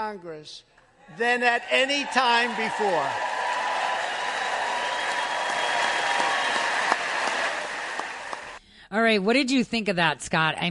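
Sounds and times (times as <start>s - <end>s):
speech: 0.0s - 3.3s, 8.9s - 10.6s
members of Congress applauding and cheering during a speech: 1.2s - 8.6s.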